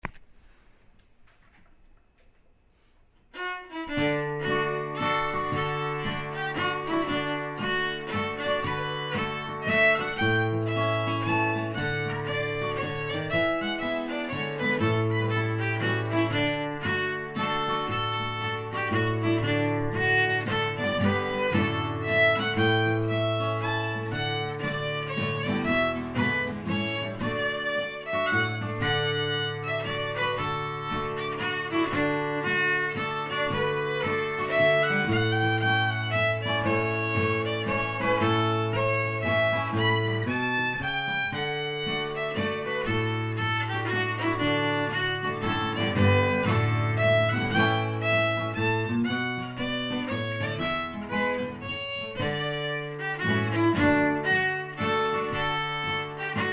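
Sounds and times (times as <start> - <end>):
country waltz music: 3.4 - 56.5.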